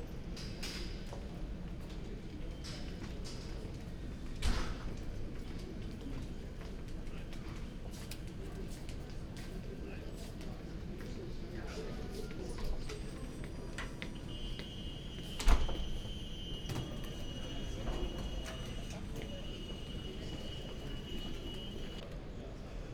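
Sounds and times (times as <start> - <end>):
large urban building interior ambience near elevator: 0.0 - 22.9.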